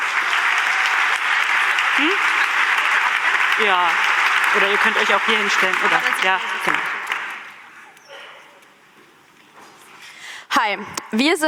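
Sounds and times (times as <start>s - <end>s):
steady dense crowd applause: 0.0s - 7.9s
speech: 2.0s - 2.3s, 3.6s - 6.9s, 10.7s - 11.4s.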